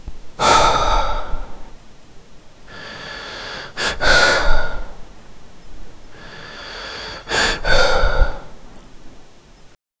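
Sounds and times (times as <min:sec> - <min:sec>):
very slow breathing: 0:00.4 - 0:01.8, 0:02.6 - 0:05.3, 0:05.9 - 0:09.0.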